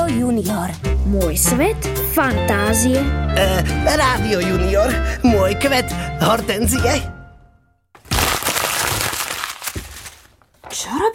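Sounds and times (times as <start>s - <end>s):
speech: 0.1s - 7.1s
paper being crumpled up: 8.0s - 10.7s.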